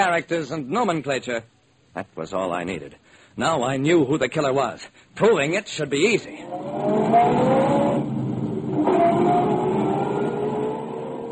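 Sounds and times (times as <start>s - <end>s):
speech: 0.0s - 8.1s
car driving with rumbling engine drone and road noise: 6.4s - 11.3s.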